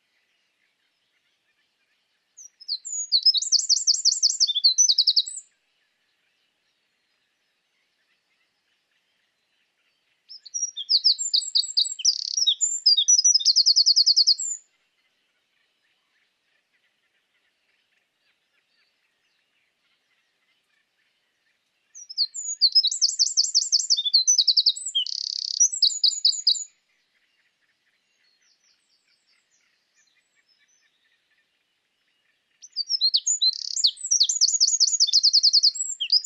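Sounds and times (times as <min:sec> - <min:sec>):
Eurasian wren Troglodytes troglodytes indigenus singing: 0:02.4 - 0:05.4, 0:10.3 - 0:14.6, 0:22.0 - 0:26.7, 0:32.6 - 0:36.2.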